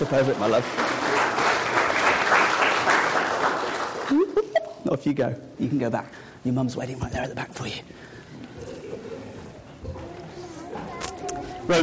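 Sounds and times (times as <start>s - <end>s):
church audience applause: 0.0s - 4.2s
speech: 0.1s - 1.4s, 4.9s - 8.1s
laughter: 4.0s - 4.8s.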